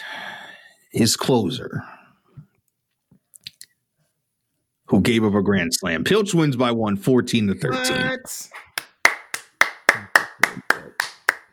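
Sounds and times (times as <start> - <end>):
speech: 0.9 - 2.0, 4.9 - 8.7
round of applause: 8.7 - 11.5.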